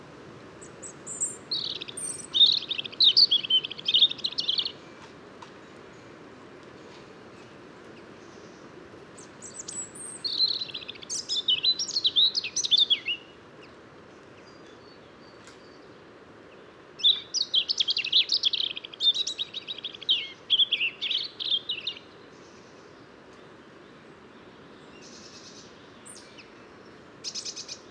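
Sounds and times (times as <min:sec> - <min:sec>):
European robin warbling song: 0:00.6 - 0:04.8, 0:09.2 - 0:13.4, 0:17.0 - 0:22.1, 0:27.2 - 0:27.8.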